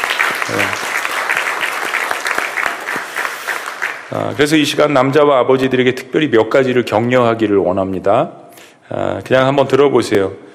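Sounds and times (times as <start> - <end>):
audience applause: 0.0 - 4.3
speech: 4.1 - 10.4.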